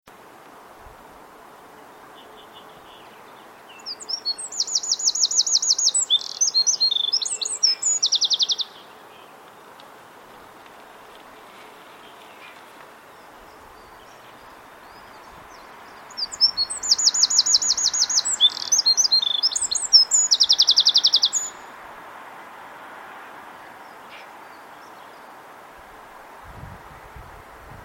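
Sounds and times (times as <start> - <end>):
faint background hiss: 0.1 - 27.8
Eurasian wren song: 3.8 - 8.8, 16.1 - 21.6.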